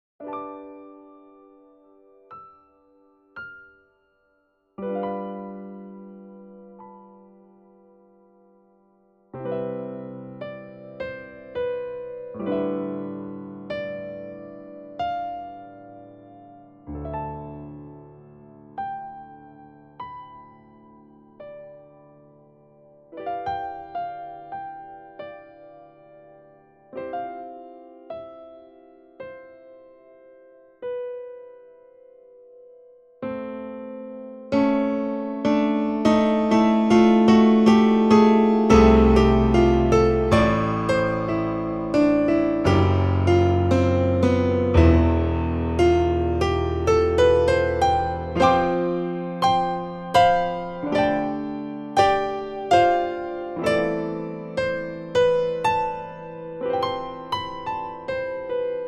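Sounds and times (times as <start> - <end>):
piano piece: 0.0 - 58.8.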